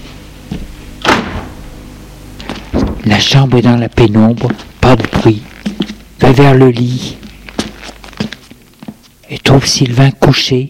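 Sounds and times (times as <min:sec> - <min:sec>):
bedroom door opening: 0:02.4 - 0:03.2
speech: 0:03.1 - 0:05.5, 0:06.2 - 0:07.2, 0:09.3 - 0:10.6.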